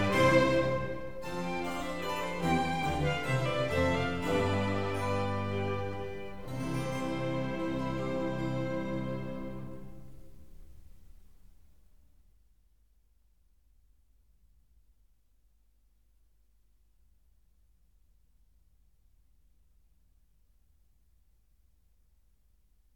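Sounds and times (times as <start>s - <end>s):
concerto grosso minuet vivace: 0.0s - 10.1s.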